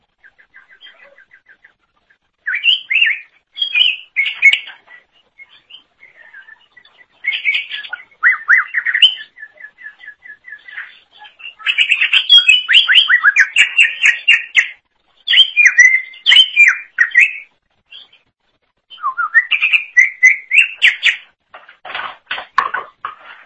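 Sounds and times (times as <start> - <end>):
leafbird singing: 2.4 - 18.2, 18.9 - 21.3.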